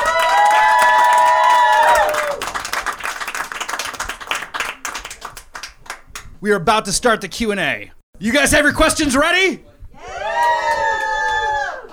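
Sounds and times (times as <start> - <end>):
audience whooping cheer for a comedian: 0.0 - 3.6, 10.0 - 11.9
audience clapping for a comedian: 0.0 - 6.3
speech: 6.4 - 9.7.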